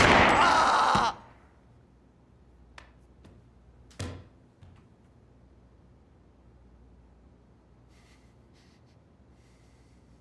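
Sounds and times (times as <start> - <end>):
gunshot in a scene from the TV drama Degrassi: 0.0 - 0.6.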